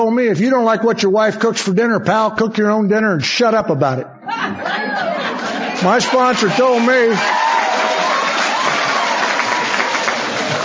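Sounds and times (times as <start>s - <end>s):
speech: 0.0s - 4.6s, 5.8s - 7.4s
laughter: 4.3s - 7.0s
audience applause mostly from women: 4.9s - 10.6s.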